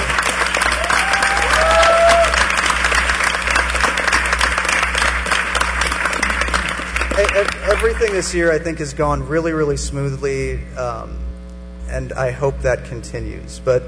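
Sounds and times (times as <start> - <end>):
audience applause: 0.0 - 8.3
speech: 8.0 - 11.3, 11.9 - 13.8.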